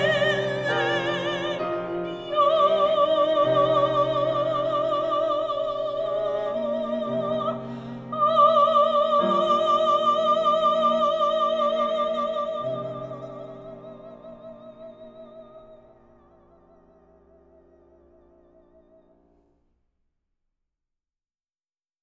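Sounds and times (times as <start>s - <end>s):
lullaby music: 0.0s - 17.2s.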